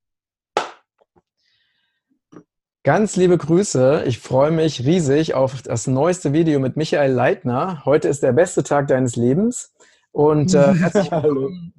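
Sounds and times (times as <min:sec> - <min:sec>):
hand clap to start recording: 0:00.5 - 0:01.0
speech: 0:02.8 - 0:11.7
laughter: 0:10.5 - 0:11.7.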